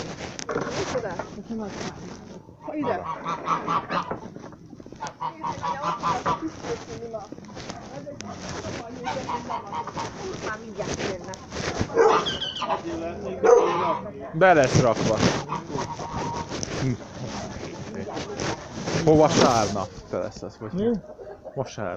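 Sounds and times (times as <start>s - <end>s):
speech: 1.4s - 4.3s, 5.3s - 15.6s, 16.8s - 17.1s, 19.1s - 21.9s
fowl honking: 2.6s - 7.0s, 8.3s - 10.6s, 11.9s - 14.1s, 15.1s - 16.5s
dog barking during a pig slaughter: 11.9s - 12.3s, 13.4s - 13.8s.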